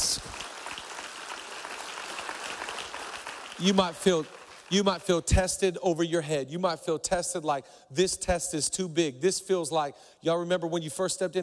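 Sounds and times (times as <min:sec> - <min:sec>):
audience clapping: 0:00.0 - 0:05.1
speech: 0:03.6 - 0:11.4.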